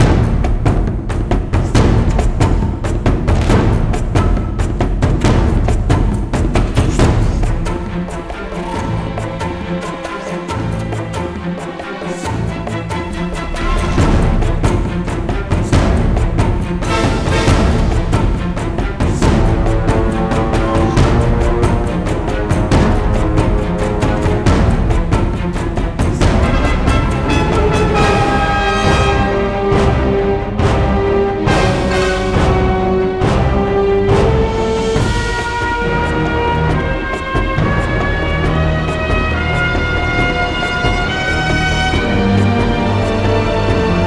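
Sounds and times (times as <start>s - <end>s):
mid combat music loop: 0.0s - 44.0s.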